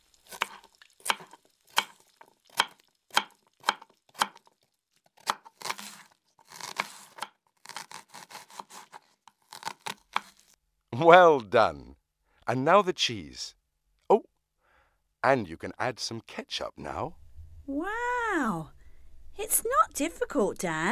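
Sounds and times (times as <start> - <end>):
knife chopping tomato, lettuce and onion for a hamburger: 0.3 - 4.5, 5.2 - 10.5
speech: 11.0 - 11.9, 12.5 - 13.6, 15.2 - 18.8, 19.4 - 20.8.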